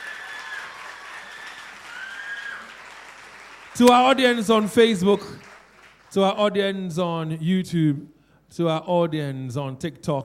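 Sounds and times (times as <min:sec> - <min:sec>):
faint audience applause for contestants after a match: 0:00.0 - 0:06.2
speech: 0:03.8 - 0:05.5, 0:06.1 - 0:10.2.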